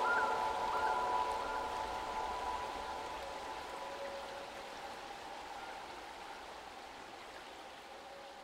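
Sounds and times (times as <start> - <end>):
pan flute: 0.0 - 4.6.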